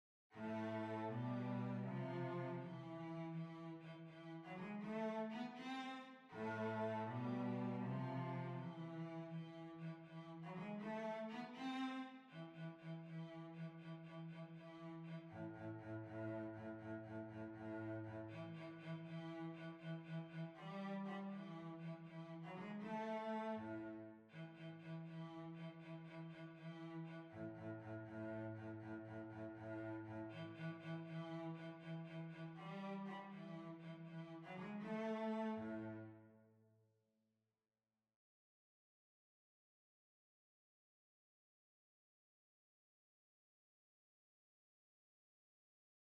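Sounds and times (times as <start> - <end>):
violoncello: 0.3 - 36.4.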